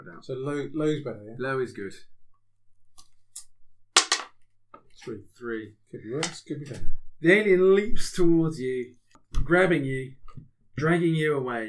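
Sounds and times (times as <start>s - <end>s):
speech: 0.0s - 2.2s, 5.0s - 11.6s
six-sided die clattering during a tabletop game: 4.0s - 4.3s, 6.2s - 6.5s.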